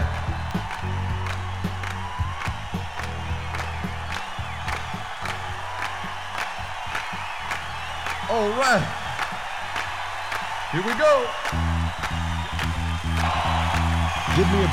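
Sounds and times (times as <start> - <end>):
audience clapping in rhythm: 0.0 - 14.7
scattered voices and whoops: 0.0 - 14.7
speech: 8.3 - 9.0, 10.7 - 11.4.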